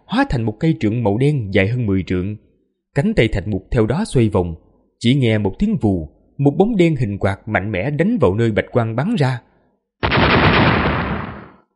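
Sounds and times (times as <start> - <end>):
speech: 0.1 - 9.5
explosion blasts sound effect: 10.0 - 11.6.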